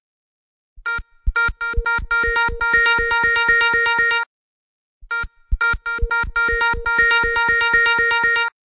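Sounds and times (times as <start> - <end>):
beeping: 0.8 - 4.3, 5.1 - 8.5.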